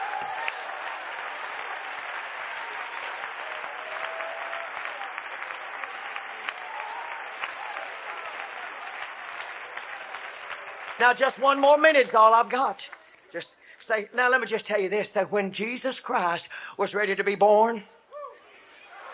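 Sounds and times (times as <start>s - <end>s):
audience clapping hands: 0.0s - 13.3s
speech: 11.0s - 18.0s.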